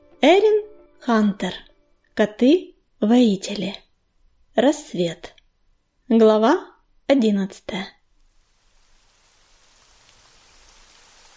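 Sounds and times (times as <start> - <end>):
speech: 0.2 - 3.8, 4.6 - 5.4, 6.1 - 8.0
heavy rain falling: 8.2 - 11.3.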